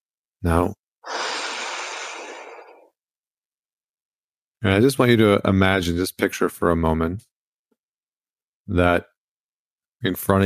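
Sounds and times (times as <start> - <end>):
speech: 0.4 - 1.2, 4.6 - 7.3, 8.7 - 9.1, 10.0 - 10.4
deep breath: 1.0 - 2.9.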